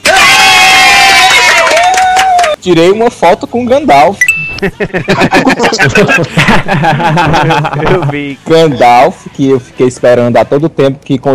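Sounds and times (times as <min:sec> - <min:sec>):
crowd cheering and whooping with high-pitched screams: 0:00.0 - 0:02.6
scattered clapping: 0:01.0 - 0:02.6
speech: 0:02.6 - 0:11.3
laughter: 0:04.5 - 0:08.8.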